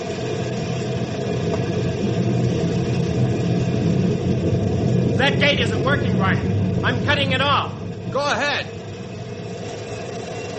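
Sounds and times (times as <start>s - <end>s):
engine of a lifting device put in gear: 0.0s - 10.5s
speech: 5.4s - 8.8s.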